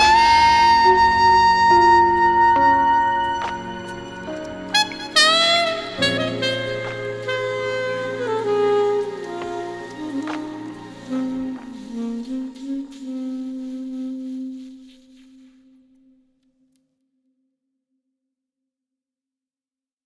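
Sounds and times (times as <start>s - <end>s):
alto saxophone: 0.0s - 16.0s.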